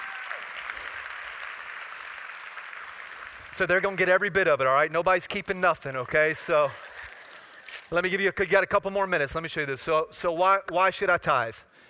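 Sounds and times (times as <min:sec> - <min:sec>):
crowd clapping: 0:00.0 - 0:04.3
speech: 0:03.6 - 0:06.8, 0:07.9 - 0:11.7.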